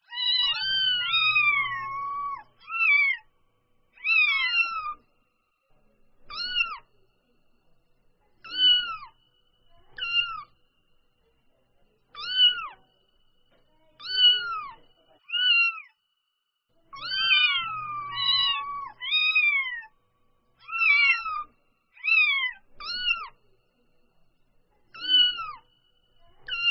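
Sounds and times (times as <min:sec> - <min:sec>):
newborn kitten meowing: 0:00.1 - 0:03.2, 0:04.0 - 0:05.0, 0:08.5 - 0:09.1, 0:10.0 - 0:10.4, 0:12.2 - 0:12.8, 0:14.0 - 0:15.9, 0:16.9 - 0:19.9, 0:20.6 - 0:23.4, 0:24.9 - 0:25.6.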